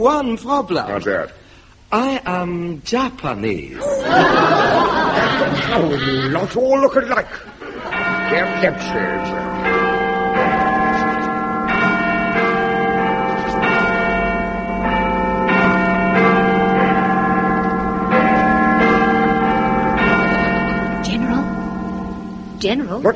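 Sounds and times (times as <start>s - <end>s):
speech: 0.0s - 9.8s, 22.6s - 23.1s
laughter: 3.8s - 8.5s
clock striking the hour: 7.9s - 23.1s.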